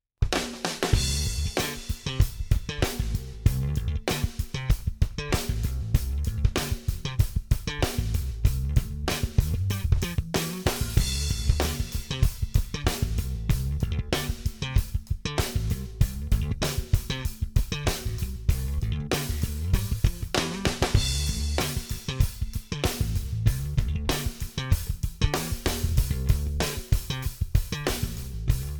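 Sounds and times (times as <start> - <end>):
happy slap bass: 0.9 - 28.7.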